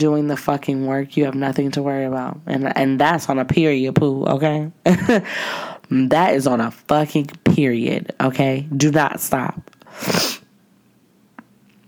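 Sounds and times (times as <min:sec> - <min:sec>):
speech: 0:00.0 - 0:10.4
quiet breathing: 0:05.2 - 0:05.9
faint sniff: 0:09.9 - 0:10.5
person sneezing from allergies: 0:09.9 - 0:10.5.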